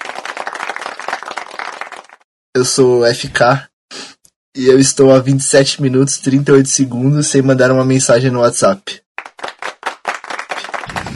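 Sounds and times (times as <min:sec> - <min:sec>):
group of people clapping: 0:00.0 - 0:02.3, 0:09.2 - 0:11.1
speech: 0:02.6 - 0:03.7, 0:04.6 - 0:09.0.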